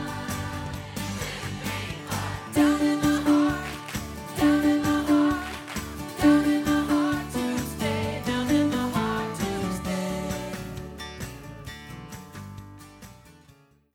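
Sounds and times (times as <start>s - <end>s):
gospel choir tenor and bass voices singing: 0.0s - 10.8s.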